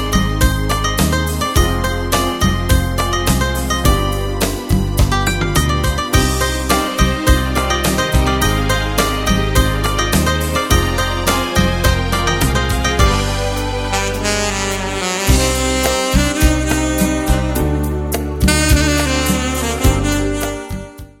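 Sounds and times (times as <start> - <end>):
saxophone: 0.1 - 21.1.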